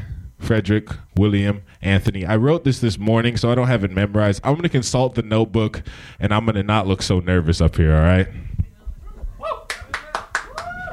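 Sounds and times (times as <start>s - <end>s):
speech: 0.5s - 8.6s
audience clapping: 9.7s - 10.9s.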